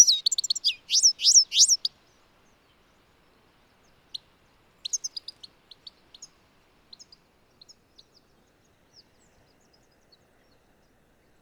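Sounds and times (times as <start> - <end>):
European goldfinch Carduelis carduelis twittering and buzzy trills: 0.0 - 1.9, 4.8 - 8.2.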